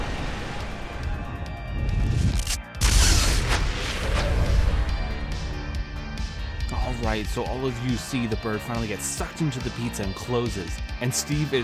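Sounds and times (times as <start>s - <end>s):
loud explosive blast with deep rumble: 0.0s - 6.6s
speech: 7.1s - 11.6s.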